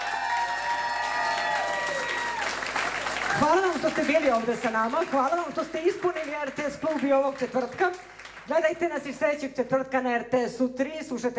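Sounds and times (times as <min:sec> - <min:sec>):
club concert audience applauding a tribute band's musicians: 0:00.0 - 0:08.5
speech: 0:03.4 - 0:11.3.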